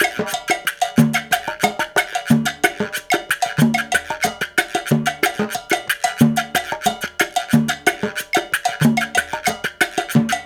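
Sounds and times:
guaguanco rhythm: 0:00.0 - 0:10.4.

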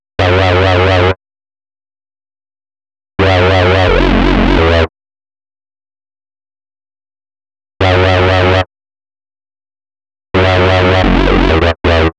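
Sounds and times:
wobble synth lead: 0:00.2 - 0:01.2, 0:03.2 - 0:04.9, 0:07.8 - 0:08.7, 0:10.4 - 0:12.1.

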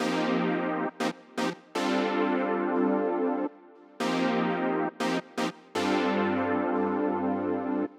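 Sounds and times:
nu disco synth at 120 BPM in C minor: 0:00.0 - 0:07.9.

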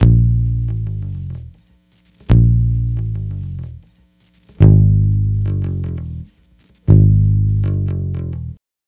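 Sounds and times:
multiple guitars and bass bossa nova at 105 bpm: 0:00.0 - 0:01.6, 0:02.3 - 0:03.8, 0:04.6 - 0:06.3, 0:06.9 - 0:08.6.

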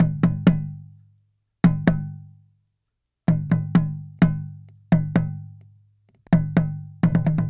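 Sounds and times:
small taiko drum from Asia: 0:00.0 - 0:00.8, 0:01.6 - 0:02.3, 0:03.3 - 0:05.6, 0:06.3 - 0:07.4.

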